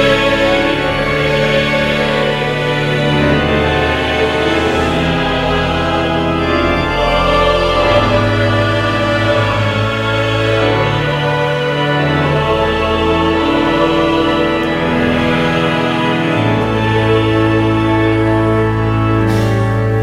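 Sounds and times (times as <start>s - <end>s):
person singing: 0.0s - 19.9s.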